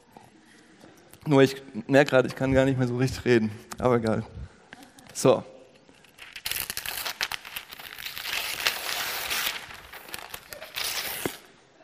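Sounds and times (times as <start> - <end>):
speech: 1.3 - 4.5, 5.2 - 5.5
gift wrapping paper crinkling and tearing as a gift is unwrapped: 5.9 - 11.5.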